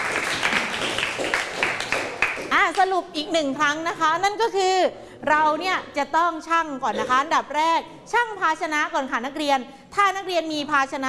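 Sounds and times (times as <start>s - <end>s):
applause: 0.0s - 2.9s
speech: 2.8s - 11.0s.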